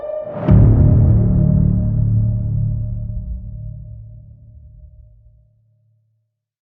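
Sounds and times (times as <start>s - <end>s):
epic intense horror trailer music: 0.2s - 5.3s.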